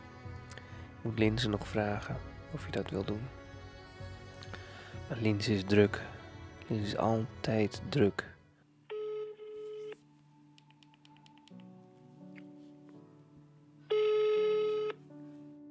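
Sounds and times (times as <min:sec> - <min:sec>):
speech: 0:01.0 - 0:03.4, 0:05.1 - 0:08.3
telephone ringing: 0:08.9 - 0:10.0, 0:13.9 - 0:15.0.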